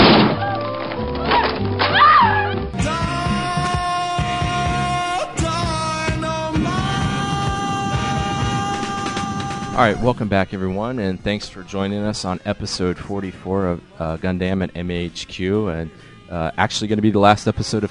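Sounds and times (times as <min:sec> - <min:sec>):
door being broken down: 0:00.0 - 0:02.8
music with sustained tones: 0:00.3 - 0:09.6
speech: 0:09.8 - 0:17.9.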